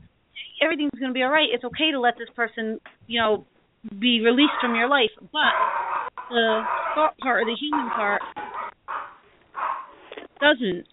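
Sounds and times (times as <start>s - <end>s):
speech: 0.6s - 8.4s, 10.4s - 10.9s
small dogs squabbling with chihuahua-like yapping: 4.4s - 10.1s.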